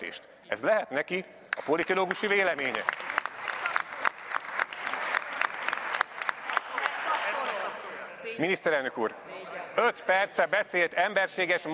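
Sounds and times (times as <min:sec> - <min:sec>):
speech: 0:00.0 - 0:03.0, 0:08.4 - 0:11.7
applause in parliament: 0:01.5 - 0:07.9.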